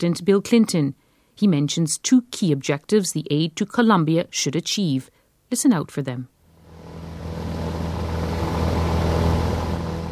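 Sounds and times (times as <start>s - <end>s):
speech: 0.0s - 6.4s
crop-spraying aircraft flying overhead: 6.5s - 10.1s.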